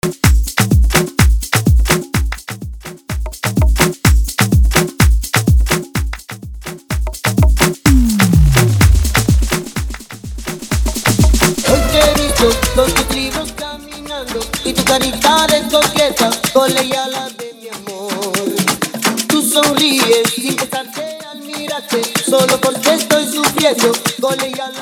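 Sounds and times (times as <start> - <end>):
afro house reedit at 126 bpm: 0.0 - 24.8.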